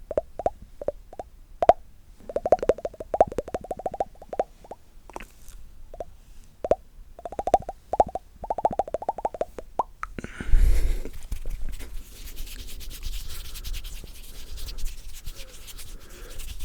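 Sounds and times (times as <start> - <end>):
extreme wet mouth pops and clicks: 0.1 - 5.3, 6.0 - 10.2
dense steady sticky crackling rub: 11.1 - 16.6.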